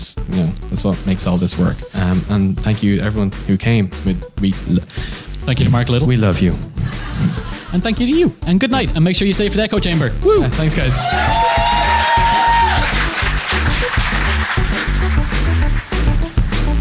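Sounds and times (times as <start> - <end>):
speech: 0.0 - 11.8
laughter: 6.7 - 8.2
audience applause at end of live show: 10.9 - 16.7.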